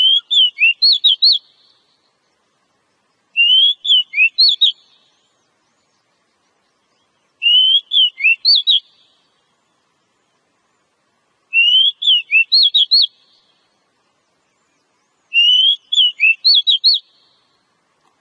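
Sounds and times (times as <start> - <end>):
Oriental magpie-robin whistling phrases: 0.0 - 1.6, 3.4 - 5.0, 7.4 - 9.0, 11.5 - 13.2, 15.3 - 17.2.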